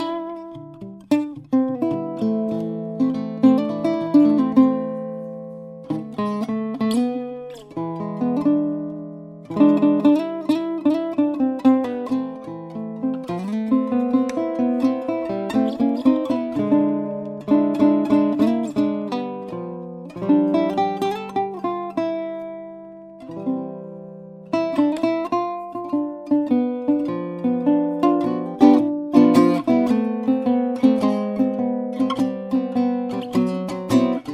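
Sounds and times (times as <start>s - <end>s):
maple archtop ukulele: 0.0s - 34.3s.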